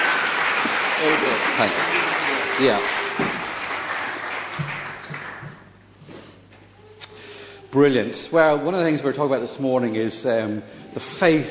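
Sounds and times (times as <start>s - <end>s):
audience applause: 0.0s - 5.8s
speech: 1.0s - 3.4s, 7.8s - 11.5s.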